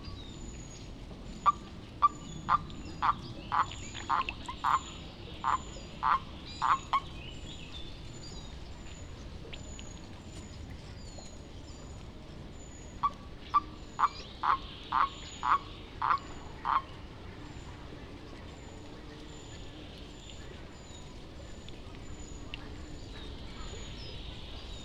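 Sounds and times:
common toad Bufo bufo calling: 1.4 - 7.1, 13.0 - 16.9.

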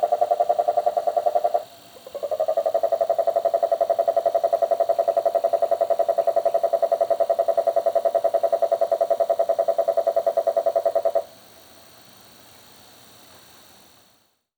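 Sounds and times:
marine toad Rhinella marina calling: 0.0 - 11.3.

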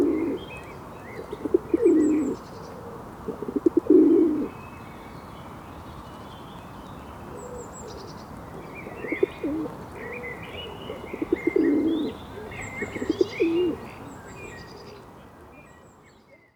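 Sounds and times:
Columba livia rock dove: 0.0 - 4.5, 8.8 - 13.9.

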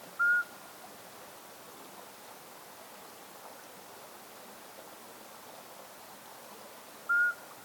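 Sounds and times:
Iberian midwife toad Alytes cisternasii calling: 0.2 - 0.5, 7.1 - 7.5.

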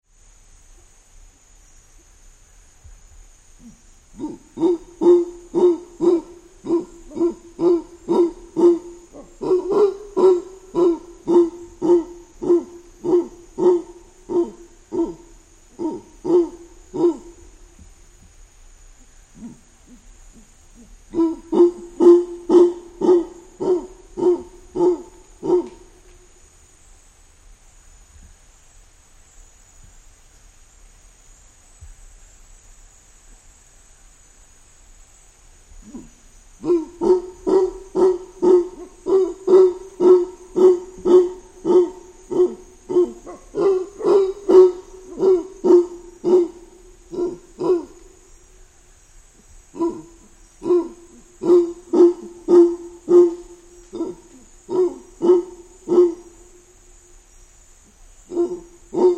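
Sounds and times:
mantled howler monkey: 3.6 - 17.8, 19.3 - 26.1, 35.8 - 48.5, 49.4 - 56.7, 57.9 - 59.1.

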